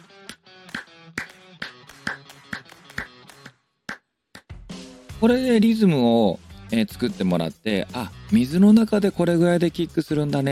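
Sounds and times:
rhythmic hand claps demonstrating kick tempo: 0.0s - 5.0s
speech: 5.2s - 10.5s.

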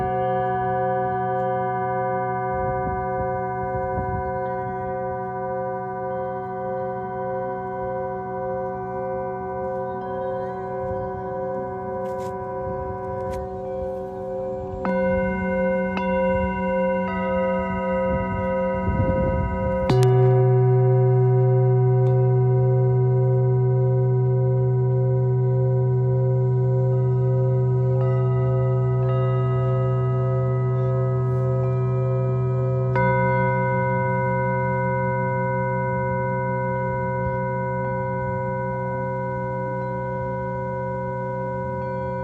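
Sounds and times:
singing bowls ringing for sound healing: 0.0s - 42.2s.

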